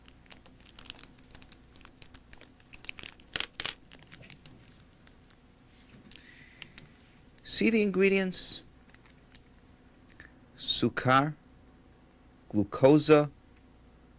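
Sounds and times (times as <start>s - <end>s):
chewing gum wrapper crinkling and tearing: 0.0s - 5.4s, 8.8s - 9.6s
speech: 7.6s - 8.6s, 10.8s - 11.4s, 12.5s - 13.4s.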